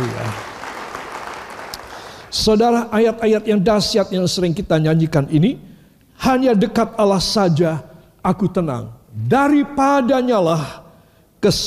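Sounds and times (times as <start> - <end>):
audience applauding: 0.0 - 2.3
speech: 2.3 - 10.8, 11.4 - 11.6.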